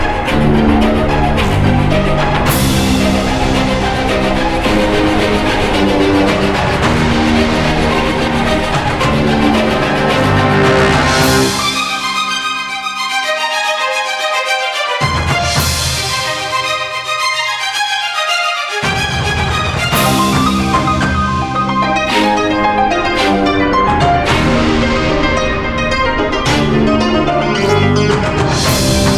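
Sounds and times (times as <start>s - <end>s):
epic orchestral music: 0.0s - 29.1s.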